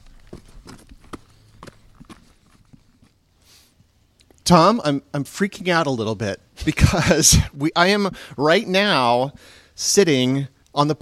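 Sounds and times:
footsteps walking along a trail toward the porch of Top Cottage in Hyde Park: 0.0s - 3.2s
soft hiss: 0.0s - 11.0s
speech: 4.5s - 11.0s.

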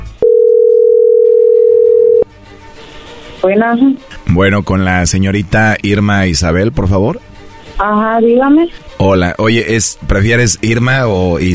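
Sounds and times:
telephone dialing tone: 0.2s - 2.3s
speech: 3.4s - 11.5s.

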